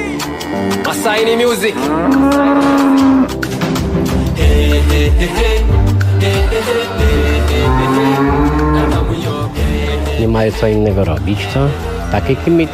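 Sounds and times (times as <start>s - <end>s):
cows mooing in the Podlasie region of Poland: 0.0s - 3.5s, 6.3s - 10.4s, 11.3s - 12.7s
speech: 0.5s - 3.5s, 4.8s - 8.4s, 10.2s - 12.7s.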